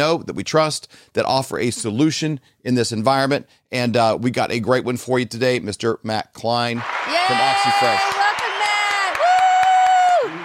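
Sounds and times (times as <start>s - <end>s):
speech: 0.0s - 8.2s
studio audience applause and cheering: 6.8s - 10.4s.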